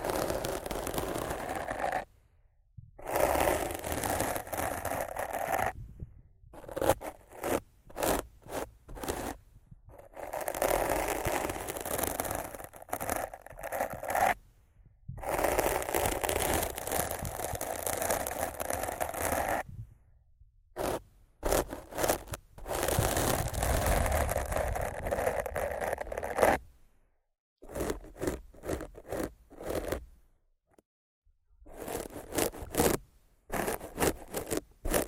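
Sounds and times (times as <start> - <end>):
rough scratching and brushing against a microphone: 0.0 - 2.1, 3.0 - 14.5, 15.1 - 19.8, 20.8 - 26.7, 27.6 - 30.2, 31.7 - 35.0.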